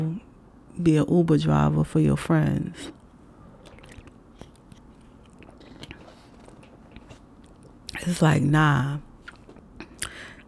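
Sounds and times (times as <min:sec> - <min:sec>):
speech: 0:00.8 - 0:03.0, 0:08.0 - 0:09.1
person drinking water: 0:02.9 - 0:08.0, 0:09.2 - 0:10.4.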